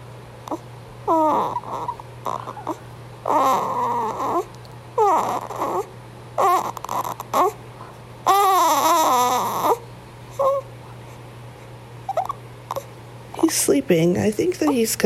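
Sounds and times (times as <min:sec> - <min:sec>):
speech: 0:00.5 - 0:02.0, 0:13.9 - 0:15.0
newborn baby boy squeaking: 0:00.5 - 0:07.6, 0:08.3 - 0:09.8, 0:10.4 - 0:10.7, 0:12.1 - 0:12.9.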